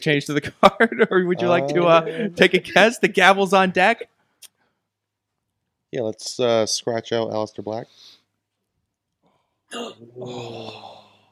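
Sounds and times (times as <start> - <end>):
speech: 0.0 - 4.1, 5.9 - 8.1, 9.7 - 11.0
person gasping into a voiced exclamation: 9.7 - 11.2.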